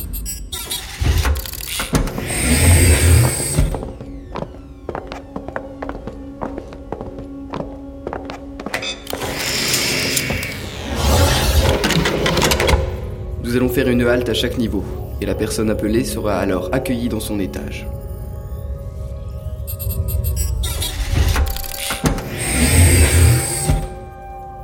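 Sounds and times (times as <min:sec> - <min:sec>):
elevator motor whirring and rumbling: 0:00.0 - 0:06.3, 0:08.8 - 0:13.4, 0:18.0 - 0:24.3
speech: 0:13.8 - 0:18.1.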